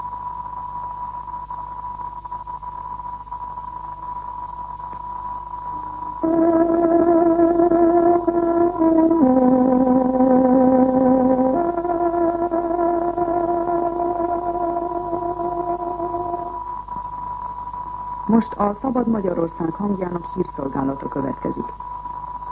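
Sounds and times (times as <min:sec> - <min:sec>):
tárogató playing a radio time signal: 0:06.2 - 0:16.7
speech: 0:18.6 - 0:21.8.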